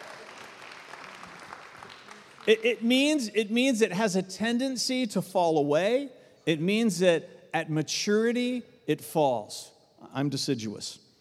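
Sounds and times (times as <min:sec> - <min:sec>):
audience cheering and applauding: 0:00.0 - 0:02.5
speech: 0:02.4 - 0:11.0.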